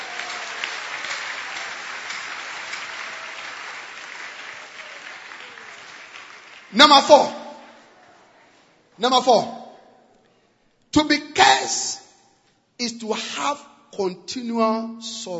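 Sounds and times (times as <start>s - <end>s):
crowd clapping: 0.0s - 8.0s
speech: 6.7s - 7.4s, 9.0s - 9.6s, 10.9s - 12.0s, 12.8s - 15.3s.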